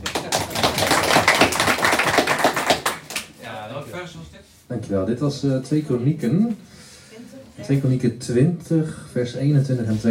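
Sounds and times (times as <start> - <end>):
audience applause: 0.0 - 3.3
speech: 4.9 - 6.7, 7.7 - 10.0.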